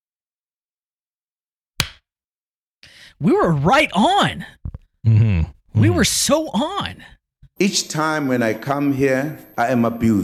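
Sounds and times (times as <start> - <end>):
hands clapping in unison: 1.8 - 2.0
speech: 3.2 - 10.2.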